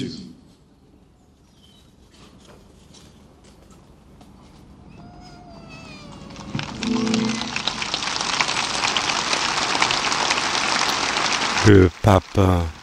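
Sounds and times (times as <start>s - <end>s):
crowd applause after a homily: 6.3s - 12.8s
brief high tone: 6.6s - 8.2s
speech: 11.7s - 12.8s.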